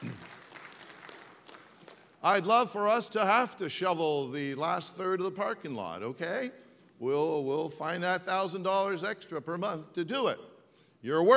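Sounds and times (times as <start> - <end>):
audience applause: 0.0 - 1.9
speech: 2.2 - 11.3.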